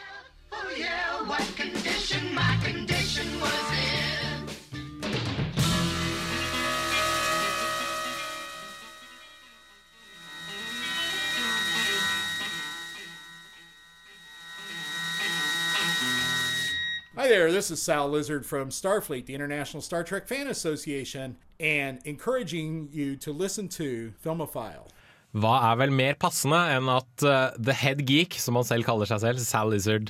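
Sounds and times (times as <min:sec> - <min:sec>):
punchy choppy notes of film soundtrack song: 0:01.8 - 0:13.7
dense buzzing sustained wash of sound: 0:05.6 - 0:17.1
speech: 0:17.3 - 0:30.0.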